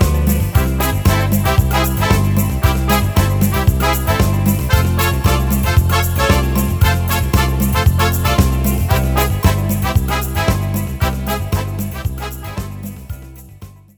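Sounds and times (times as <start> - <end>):
Brazilian brass playing: 0.0 - 13.1.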